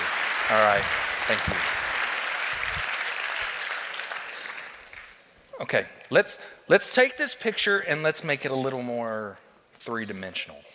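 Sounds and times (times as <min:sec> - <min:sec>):
audience round of applause: 0:00.0 - 0:05.2
speech: 0:00.5 - 0:01.8, 0:05.6 - 0:10.7.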